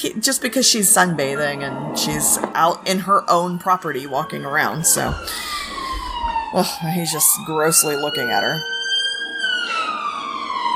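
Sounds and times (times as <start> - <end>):
speech: 0.0 - 5.8, 6.5 - 8.8
police car siren wailing: 0.4 - 10.7.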